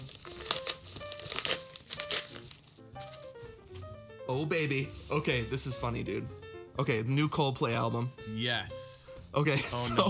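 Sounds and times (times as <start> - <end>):
crinkly gum package wrapper being torn open: 0.0 - 3.4
speech: 4.3 - 10.0.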